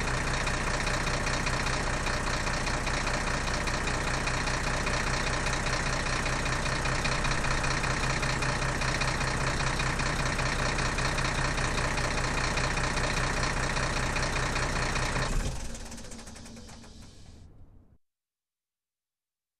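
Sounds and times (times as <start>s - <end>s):
truck engine ignition and running at idle: 0.0s - 18.0s.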